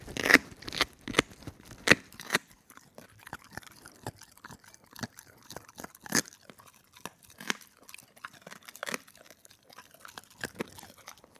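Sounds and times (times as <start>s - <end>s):
dog gnawing a bone with crunching bites and cracks: 0.0s - 11.3s.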